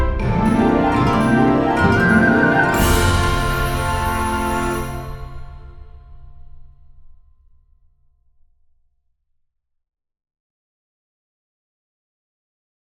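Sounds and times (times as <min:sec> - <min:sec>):
Dutch Christmas song medley: 0:00.0 - 0:06.4.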